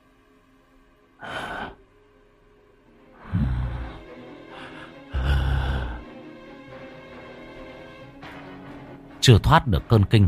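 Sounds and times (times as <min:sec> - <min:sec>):
heavy snorting, huffing breaths: 0:03.2 - 0:06.1
speech: 0:09.2 - 0:10.2.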